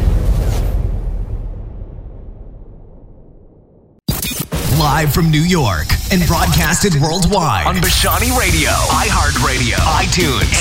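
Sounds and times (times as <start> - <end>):
explosion sound effect: 0.0 - 5.1
speech: 4.9 - 10.5.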